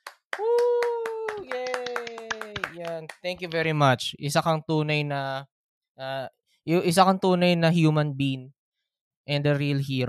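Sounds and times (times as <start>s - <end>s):
live studio audience clapping: 0.0s - 3.8s
speech: 2.8s - 8.6s, 9.3s - 10.0s.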